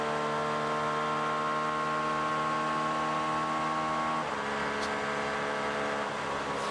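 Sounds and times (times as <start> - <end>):
high-revving 2.6 V6 Acura race car engine: 0.0 - 6.6.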